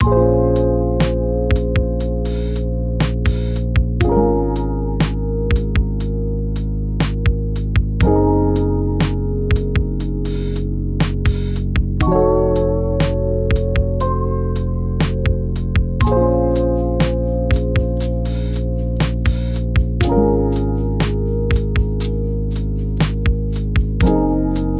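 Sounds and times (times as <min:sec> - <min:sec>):
lo-fi music: 0:00.0 - 0:24.7.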